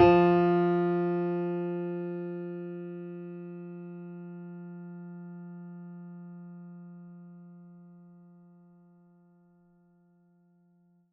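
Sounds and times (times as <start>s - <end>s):
mini grand piano: 0.0s - 7.3s.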